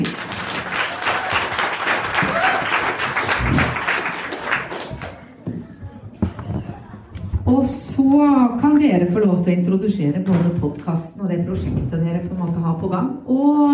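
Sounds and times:
audience applause: 0:00.0 - 0:05.4
speech: 0:07.5 - 0:13.7.

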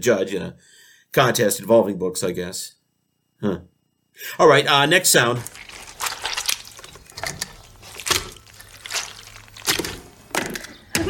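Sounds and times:
speech: 0:00.0 - 0:02.8, 0:03.4 - 0:05.9
wringing out custard-filled flannel: 0:04.9 - 0:10.7.

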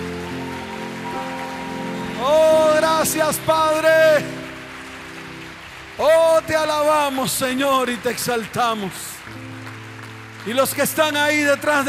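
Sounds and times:
sustained humming musical tones: 0:00.0 - 0:05.8
audience applause: 0:00.0 - 0:11.8
speech: 0:03.0 - 0:04.4, 0:06.0 - 0:09.4, 0:10.4 - 0:11.8.

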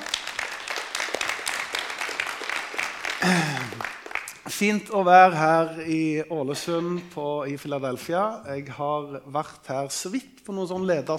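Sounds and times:
audience applause: 0:00.0 - 0:04.5
speech: 0:04.6 - 0:11.1.

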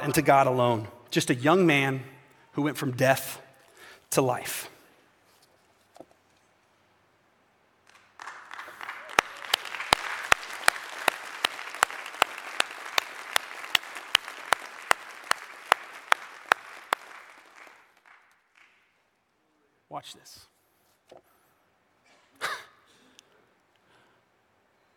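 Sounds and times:
speech: 0:00.0 - 0:03.4, 0:04.1 - 0:04.8, 0:20.0 - 0:20.5
sharp regular louder claps: 0:07.8 - 0:19.0
audience applause: 0:07.9 - 0:18.8.

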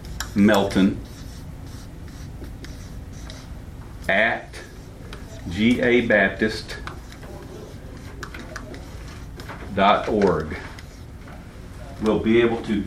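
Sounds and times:
marker squeaking on a board writing an email address: 0:00.0 - 0:03.5, 0:06.5 - 0:11.2
speech: 0:00.4 - 0:01.1, 0:04.1 - 0:04.6, 0:05.4 - 0:06.9, 0:09.8 - 0:10.7, 0:12.0 - 0:12.8.

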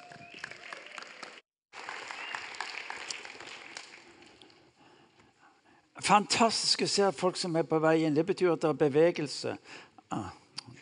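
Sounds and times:
audience applause: 0:00.0 - 0:04.4
speech: 0:06.0 - 0:10.4.

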